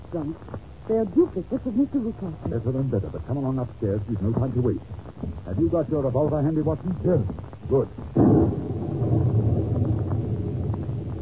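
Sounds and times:
speech: 0:00.1 - 0:08.5
thunder clap from lightning strike: 0:07.7 - 0:11.1.

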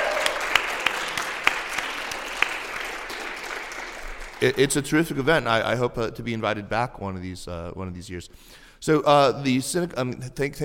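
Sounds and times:
crowd applauding: 0:00.0 - 0:04.9
speech: 0:04.4 - 0:10.6.

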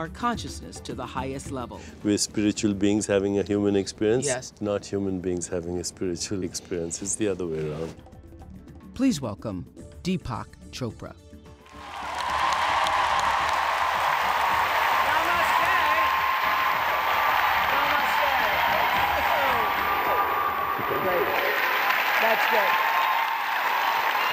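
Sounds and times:
speech: 0:00.0 - 0:08.1, 0:09.0 - 0:11.2
large audience applause in a standing ovation at Radio City for Deepak Chopra: 0:11.6 - 0:24.3
crowd noise: 0:12.1 - 0:24.3.

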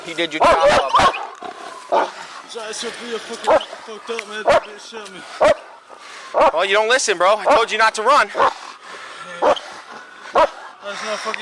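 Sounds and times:
speech: 0:00.1 - 0:01.2, 0:01.9 - 0:05.6, 0:06.3 - 0:08.6, 0:10.9 - 0:11.3
police dog barking and yelping: 0:00.4 - 0:02.2, 0:03.5 - 0:03.8, 0:04.4 - 0:04.7, 0:05.4 - 0:06.6, 0:07.4 - 0:07.7, 0:08.3 - 0:08.6, 0:09.4 - 0:09.7, 0:10.3 - 0:10.8.

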